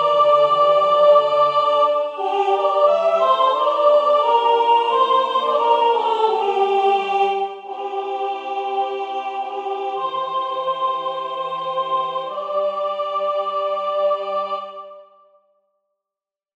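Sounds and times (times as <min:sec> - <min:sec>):
soprano singing a carol: 0:00.0 - 0:15.0.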